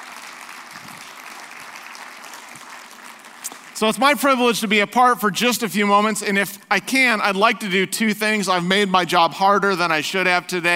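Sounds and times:
audience giving a round of applause: 0.0s - 3.8s
speech: 3.8s - 10.7s.

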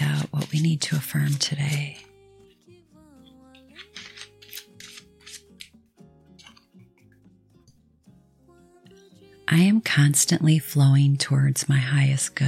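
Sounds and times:
shuffling a deck of cards: 0.0s - 1.6s, 3.6s - 5.8s
speech: 0.6s - 2.1s, 10.0s - 12.4s.

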